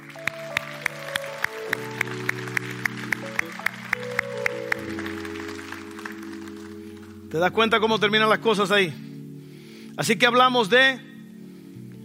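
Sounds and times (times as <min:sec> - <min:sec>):
audience applause: 0:00.0 - 0:07.2
sustained keyboard chords: 0:00.0 - 0:12.0
speech: 0:07.3 - 0:09.0, 0:10.0 - 0:11.1.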